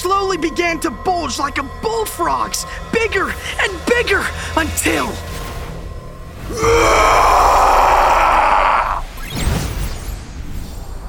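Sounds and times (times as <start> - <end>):
speech: 0.1 - 5.4, 6.5 - 7.5
short breathy rush of noise: 2.6 - 5.2, 6.4 - 9.1
loud rough primal roar: 6.4 - 9.1.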